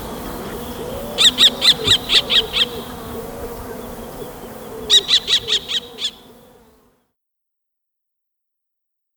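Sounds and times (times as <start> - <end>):
kestrel birdsong: 0.0 - 6.4.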